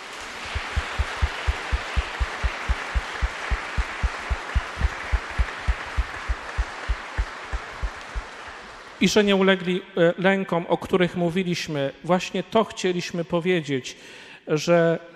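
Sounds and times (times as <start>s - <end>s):
applause: 0.0s - 9.6s
speech: 9.0s - 15.1s.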